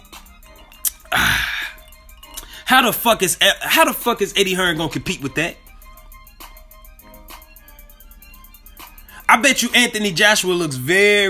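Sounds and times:
sipping red wine from a glass: 0.4 - 2.7
speech: 2.7 - 5.6, 9.5 - 11.2.

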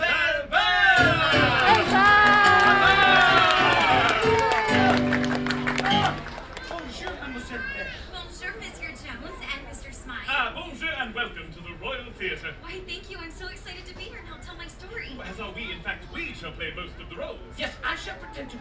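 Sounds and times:
scattered chatter: 0.0 - 18.6
crowd cheering at a princess meet-and-greet fair: 0.9 - 8.2.

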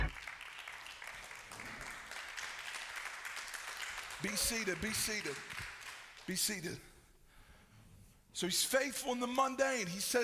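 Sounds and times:
audience clapping: 0.0 - 6.6
speech: 4.2 - 5.6, 6.3 - 6.9, 8.4 - 10.2.

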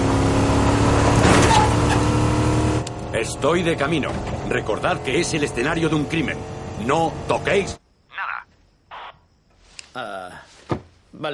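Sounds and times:
car engine droning while driving in a thriller film scene: 0.0 - 7.8
speech: 3.2 - 7.8, 10.0 - 11.3.

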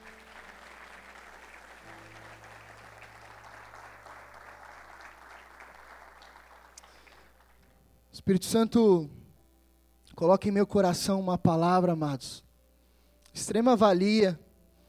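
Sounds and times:
audience applause: 0.0 - 7.7
speech: 8.2 - 9.2, 10.2 - 12.4, 13.4 - 14.4.

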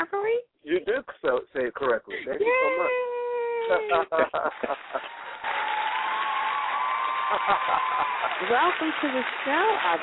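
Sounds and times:
speech: 0.1 - 3.1, 3.7 - 5.6, 7.3 - 10.0
laughter: 0.7 - 5.7, 7.0 - 8.8
audience applause: 4.0 - 10.0
faint voices and cheers: 5.0 - 10.0.

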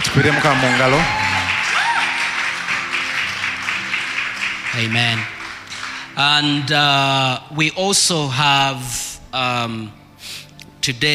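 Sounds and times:
people clapping hands: 0.0 - 7.0
speech: 0.2 - 1.2, 4.7 - 5.3, 6.2 - 11.1.

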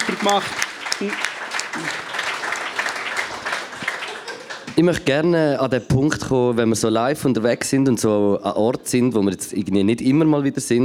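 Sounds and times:
audience applause: 0.0 - 5.0
speech: 0.2 - 2.1, 4.8 - 10.8.

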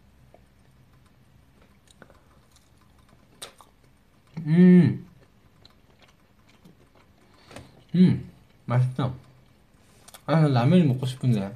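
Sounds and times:
person chewing a thick cold tonkatsu pork cutlet: 1.5 - 4.4, 5.0 - 10.3
speech: 4.4 - 5.0, 8.0 - 9.2, 10.4 - 11.5.

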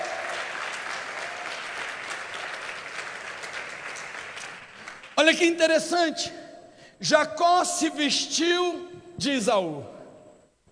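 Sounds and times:
audience applause: 0.0 - 5.2
speech: 5.2 - 6.4, 7.0 - 10.0.

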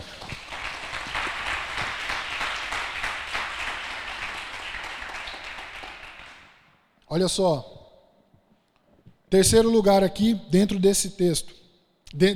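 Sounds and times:
crowd applause: 0.0 - 6.7
speech: 7.1 - 7.7, 9.3 - 12.3.

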